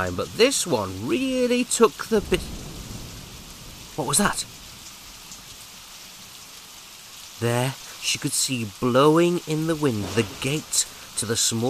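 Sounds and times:
speech: 0.0 - 2.6, 4.0 - 4.5, 7.4 - 11.6
heavy rain during a storm: 0.0 - 11.6.

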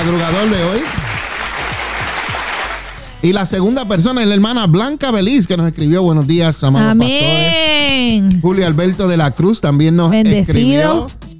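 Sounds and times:
speech: 0.0 - 1.0, 3.2 - 11.2
applause: 0.0 - 3.1.

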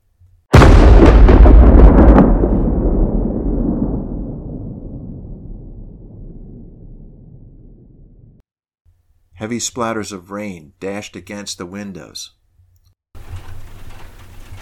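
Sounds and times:
thunder crack and rumble: 0.6 - 8.4
speech: 9.4 - 12.4.

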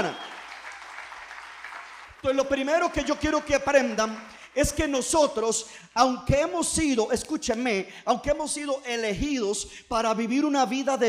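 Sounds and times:
crowd clapping: 0.0 - 5.1
speech: 2.2 - 11.0.

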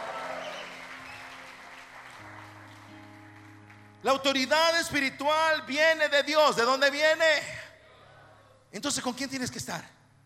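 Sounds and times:
audience clapping and cheering: 0.0 - 4.0
speech: 4.0 - 7.6, 8.7 - 10.0.

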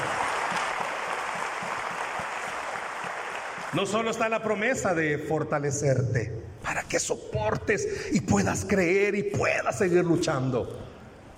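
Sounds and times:
audience applause: 0.0 - 4.3
speech: 3.7 - 10.9.

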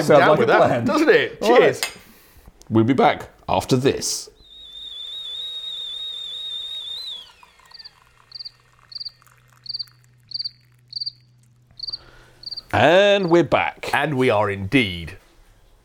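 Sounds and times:
speech: 0.0 - 2.0, 2.7 - 4.3, 12.7 - 15.2
high whistling tone gliding downward: 4.4 - 12.7
crickets chirping: 4.4 - 13.4.

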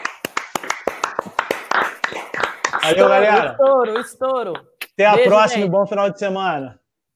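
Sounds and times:
round of applause: 0.0 - 3.4
speech: 2.8 - 6.8.

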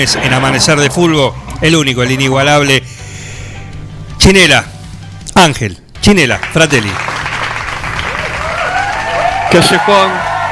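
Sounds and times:
speech: 0.0 - 3.0, 4.3 - 4.7, 5.4 - 7.1, 9.5 - 10.3
audience applauding: 6.4 - 10.5.

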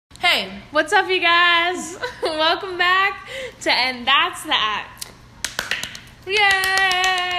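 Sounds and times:
speech: 0.4 - 5.0, 6.3 - 7.3
hands clapping: 5.4 - 7.3.

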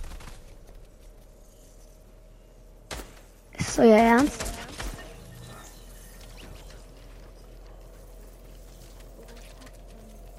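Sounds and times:
gunfire in the video game Fortnite Trio Zone Wars mode: 0.0 - 0.8, 2.9 - 6.7
low hum: 0.0 - 10.3
speech: 3.8 - 4.4.

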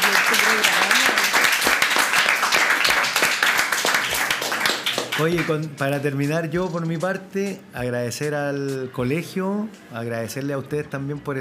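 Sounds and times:
crowd applauding: 0.0 - 6.2
speech: 5.2 - 11.4.

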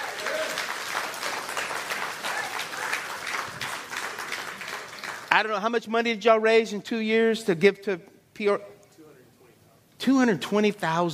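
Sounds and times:
audience hand clapping: 0.0 - 5.6
speech: 5.4 - 8.7, 10.0 - 11.1.

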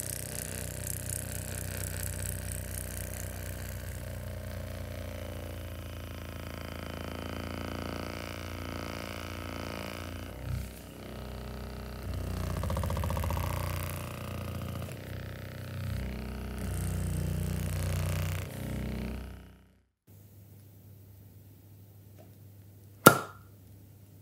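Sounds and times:
electric massager buzzing during full body massage: 0.0 - 20.0
sharp click: 23.0 - 23.4.

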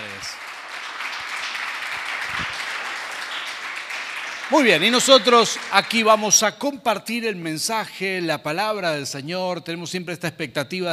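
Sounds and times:
audience applause: 0.0 - 6.4
speech: 4.5 - 10.9.

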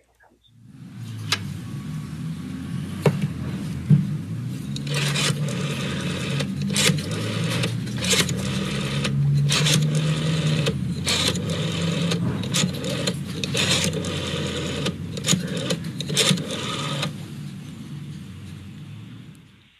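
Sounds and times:
steady low whirring hum: 0.0 - 19.7
rotary telephone being dialed: 4.7 - 17.2.

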